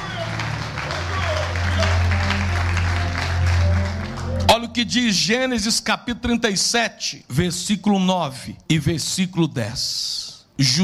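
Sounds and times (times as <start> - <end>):
audience applause: 0.0 - 4.8
speech: 4.8 - 10.8.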